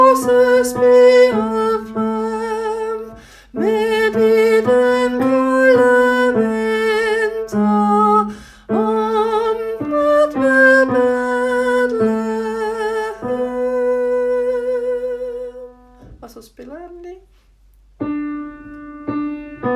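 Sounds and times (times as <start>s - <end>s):
tenor singing: 0.0s - 15.8s.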